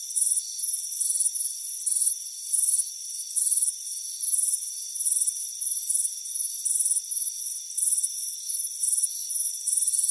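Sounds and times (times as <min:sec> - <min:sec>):
cricket chirping: 0:00.0 - 0:10.1
faint insect hum: 0:00.0 - 0:10.1.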